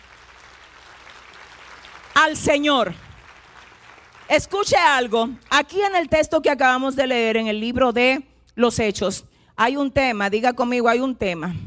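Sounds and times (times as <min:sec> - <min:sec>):
audience applause: 0:00.0 - 0:04.4
speech: 0:02.2 - 0:03.1, 0:04.3 - 0:11.6.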